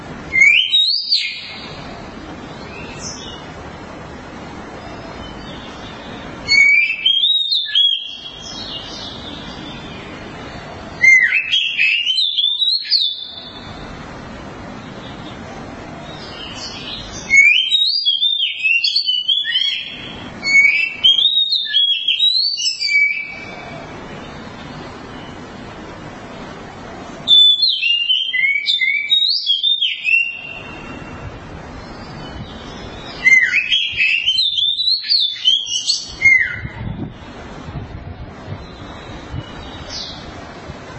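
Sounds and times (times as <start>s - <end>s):
Oriental magpie-robin whistling song: 0.3s - 1.8s, 4.9s - 10.2s, 11.0s - 13.9s, 16.1s - 23.7s, 27.3s - 36.9s, 38.6s - 40.3s.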